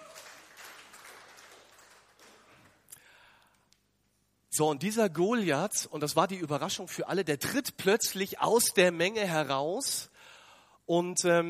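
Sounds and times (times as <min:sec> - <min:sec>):
audience applause: 0:00.0 - 0:02.8
speech: 0:04.6 - 0:10.1, 0:10.9 - 0:11.4.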